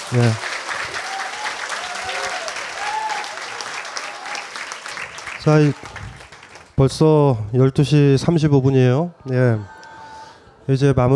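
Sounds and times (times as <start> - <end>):
audience clapping: 0.0 - 6.9
speech: 0.1 - 0.5, 5.5 - 6.0, 6.8 - 9.8, 10.7 - 11.1.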